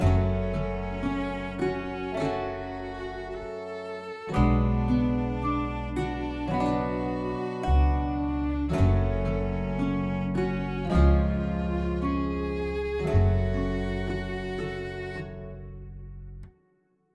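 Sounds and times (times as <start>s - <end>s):
result screen music loop: 0.0s - 16.5s.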